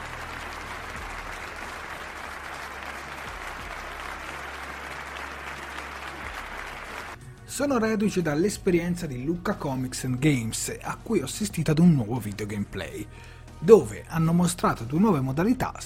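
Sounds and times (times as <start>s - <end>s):
crowd applause: 0.0s - 7.2s
speech: 7.6s - 15.8s.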